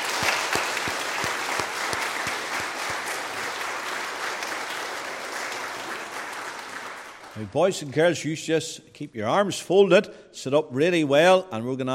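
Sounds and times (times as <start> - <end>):
applause for the children: 0.0 - 8.0
speech: 7.4 - 11.9.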